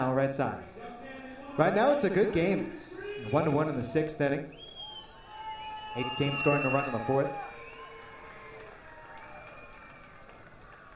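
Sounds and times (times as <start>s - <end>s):
speech: 0.0s - 0.8s, 1.6s - 4.6s, 6.0s - 7.5s
crowd screaming and cheering at a baseball game: 3.1s - 10.9s.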